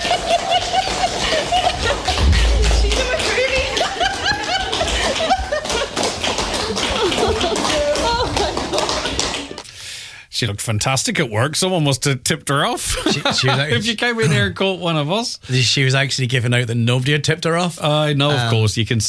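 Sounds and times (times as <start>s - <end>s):
laughter: 0.0s - 9.6s, 12.9s - 13.9s
round of applause: 0.0s - 9.6s
speech: 10.4s - 19.0s.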